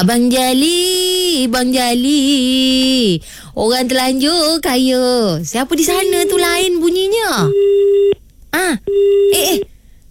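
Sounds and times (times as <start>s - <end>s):
speech: 0.0s - 9.7s
telephone line tone after a call cuts off: 6.0s - 6.7s, 7.4s - 8.2s, 8.9s - 9.6s.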